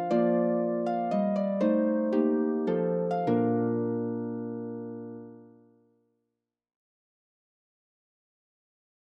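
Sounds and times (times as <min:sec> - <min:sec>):
harp waltz: 0:00.0 - 0:05.7.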